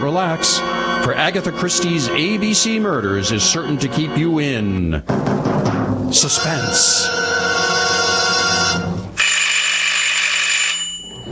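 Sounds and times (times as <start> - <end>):
speech: 0.1 - 8.1
library closing bell, loud electric bell ringing: 9.2 - 11.3.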